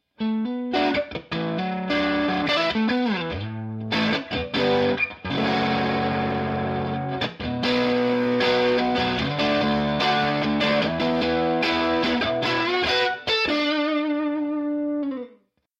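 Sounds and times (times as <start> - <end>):
overdriven sound: 0.2 - 15.3.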